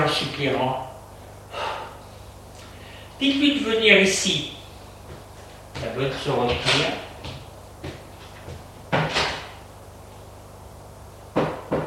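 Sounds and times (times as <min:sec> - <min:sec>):
speech: 0:00.1 - 0:00.9, 0:03.2 - 0:04.6, 0:05.8 - 0:07.0
knocking on a wooden door: 0:11.4 - 0:11.8.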